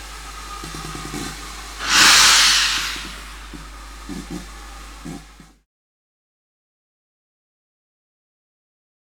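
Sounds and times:
locomotive releasing steam: 0:01.8 - 0:04.1.

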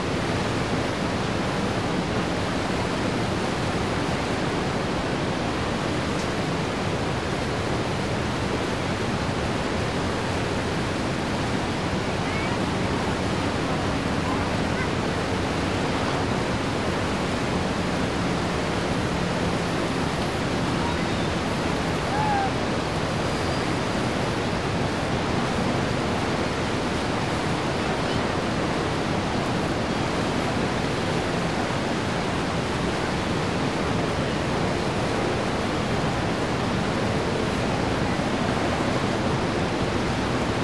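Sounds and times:
waterfall: 0:00.0 - 0:40.6.

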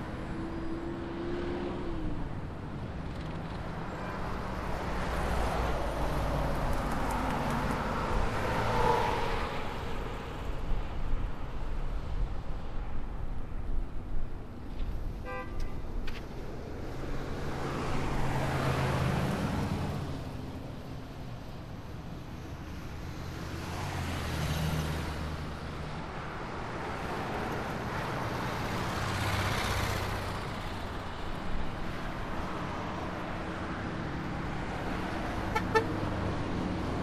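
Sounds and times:
road noise: 0:00.0 - 0:37.0.

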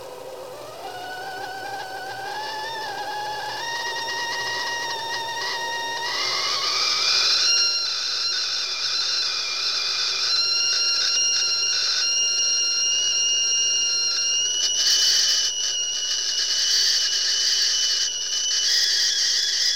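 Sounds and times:
kettle whistling: 0:00.0 - 0:19.7.

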